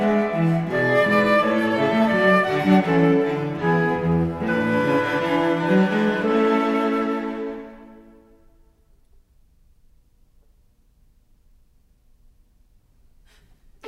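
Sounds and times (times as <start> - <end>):
flute quartet in A major: 0.0 - 8.4.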